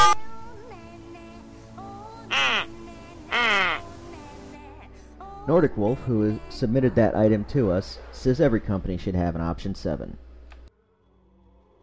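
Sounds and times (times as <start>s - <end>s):
duck quacking: 2.3s - 2.7s, 3.3s - 3.9s
speech: 5.5s - 10.2s.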